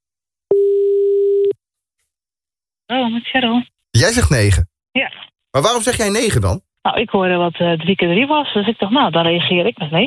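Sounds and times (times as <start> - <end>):
outgoing phone call ringing tone: 0.5 - 1.5
speech: 3.0 - 10.0.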